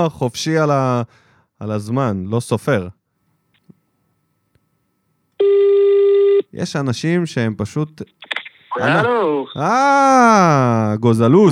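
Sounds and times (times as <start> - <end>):
speech: 0.0 - 3.0, 6.5 - 8.2, 8.8 - 11.5
phone ringback tone on an outgoing call: 5.4 - 6.4
laughter: 8.8 - 9.7, 11.4 - 11.5.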